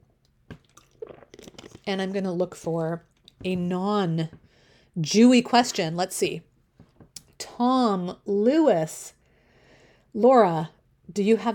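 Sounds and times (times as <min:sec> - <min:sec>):
person taking a drink: 0:00.5 - 0:02.1
speech: 0:01.9 - 0:04.4, 0:05.0 - 0:06.5, 0:07.6 - 0:09.2, 0:10.1 - 0:11.5.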